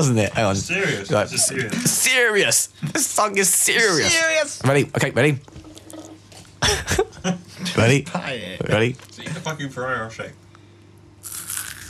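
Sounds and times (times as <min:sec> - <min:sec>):
speech: 0:00.0 - 0:05.6, 0:06.6 - 0:10.4
Ferrero Rocher crispy wafer crunching: 0:11.2 - 0:11.8.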